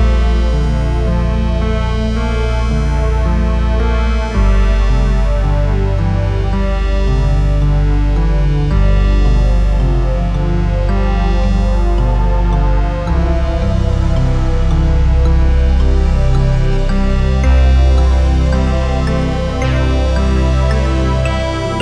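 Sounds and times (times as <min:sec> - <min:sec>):
spectrum augmented ambience: 0:00.0 - 0:21.8.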